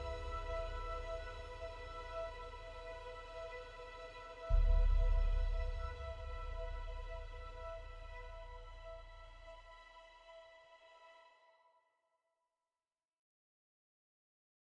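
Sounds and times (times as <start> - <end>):
world music: 0.0 - 9.8.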